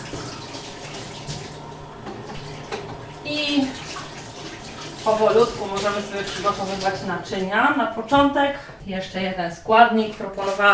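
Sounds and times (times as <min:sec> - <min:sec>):
washing hands under running tap water: 0:00.0 - 0:07.8
speech: 0:05.1 - 0:10.7.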